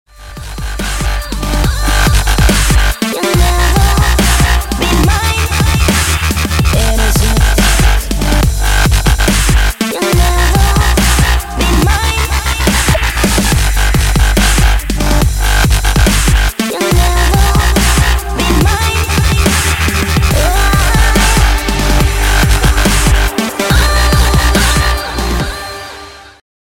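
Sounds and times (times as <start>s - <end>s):
dubstep mix: 0.1s - 26.4s.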